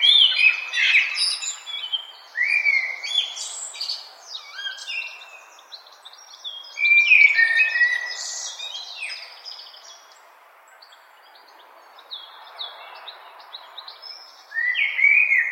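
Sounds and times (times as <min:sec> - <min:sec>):
bird singing: 0:00.0 - 0:15.5.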